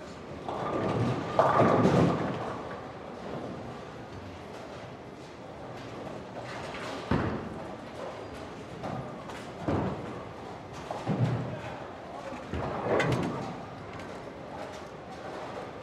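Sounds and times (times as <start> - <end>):
bowling alley light activity: 0.0 - 15.8.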